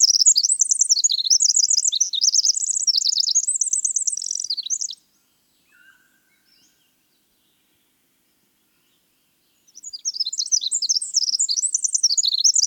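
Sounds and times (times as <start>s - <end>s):
winter wren singing trills: 0.0s - 5.0s, 9.7s - 12.6s.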